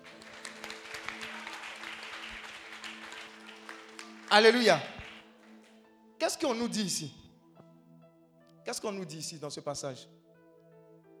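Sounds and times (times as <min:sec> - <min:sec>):
congregation applauding during a sermon: 0:00.0 - 0:05.8
speech: 0:04.3 - 0:04.9, 0:06.4 - 0:07.2, 0:08.7 - 0:10.2.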